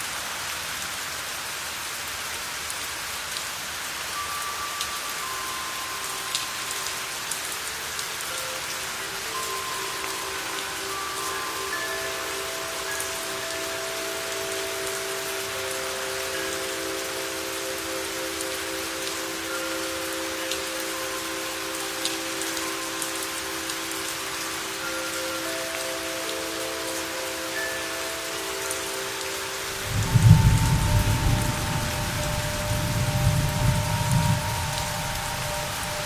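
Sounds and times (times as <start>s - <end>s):
rain pattering: 0.0s - 36.0s
wind chime tones: 4.1s - 36.0s
rumbling wind gust: 29.8s - 35.8s.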